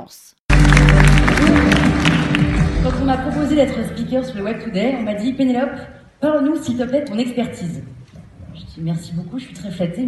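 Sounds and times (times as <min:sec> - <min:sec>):
speech: 0:00.0 - 0:01.6, 0:02.8 - 0:08.0, 0:08.6 - 0:10.0
audience applause: 0:00.5 - 0:03.5.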